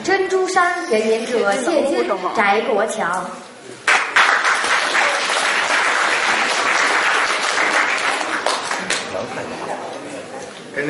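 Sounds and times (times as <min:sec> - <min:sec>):
speech: 0:00.0 - 0:03.5
audience applause: 0:03.8 - 0:09.5.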